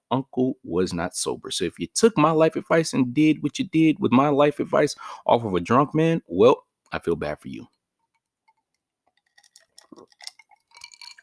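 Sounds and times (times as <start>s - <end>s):
speech: 0.1s - 7.8s
ice or water clinking in a glass: 9.3s - 11.2s.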